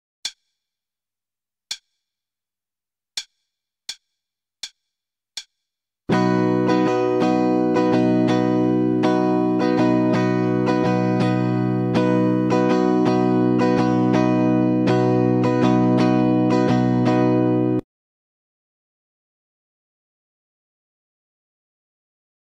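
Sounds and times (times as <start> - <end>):
starter guitar rhythm: 6.1 - 17.8.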